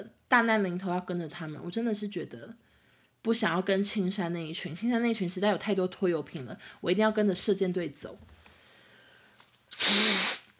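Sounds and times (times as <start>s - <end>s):
speech: 0.0s - 2.6s, 3.2s - 8.3s, 9.9s - 10.2s
person blowing nose: 9.7s - 10.5s.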